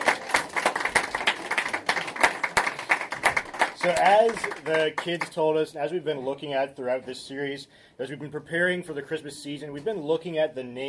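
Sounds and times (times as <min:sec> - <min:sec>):
audience applauding: 0:00.0 - 0:05.3
speech: 0:03.8 - 0:10.8.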